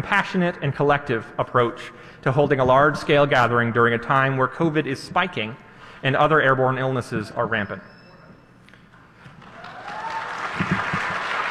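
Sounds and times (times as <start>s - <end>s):
speech: 0.0s - 7.9s
audience cheering and applauding: 9.4s - 11.4s.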